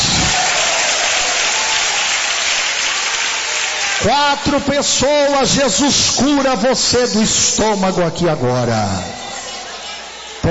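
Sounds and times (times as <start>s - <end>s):
audience applause: 0.0s - 5.4s
speech: 4.0s - 9.2s.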